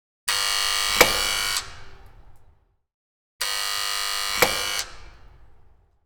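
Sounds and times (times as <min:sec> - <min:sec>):
door buzzer: 0:00.3 - 0:02.4, 0:03.4 - 0:05.7.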